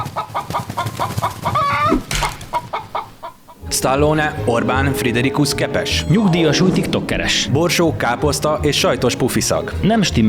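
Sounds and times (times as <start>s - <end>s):
hen squawking: 0.0s - 3.7s
hen clucking: 0.0s - 5.1s
speech: 3.8s - 10.2s.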